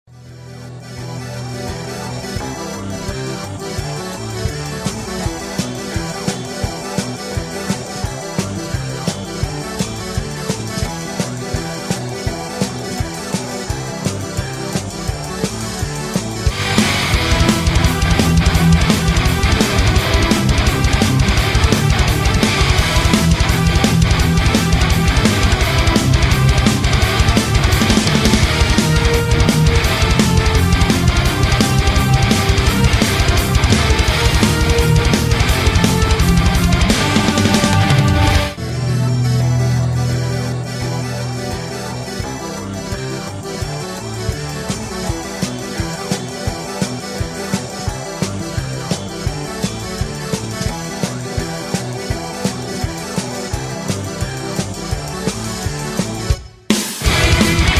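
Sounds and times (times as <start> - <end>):
instrumental music: 0.1 - 57.7.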